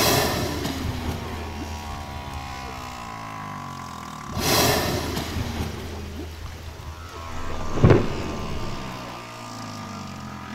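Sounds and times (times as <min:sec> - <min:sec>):
whale song: 0:00.1 - 0:10.5.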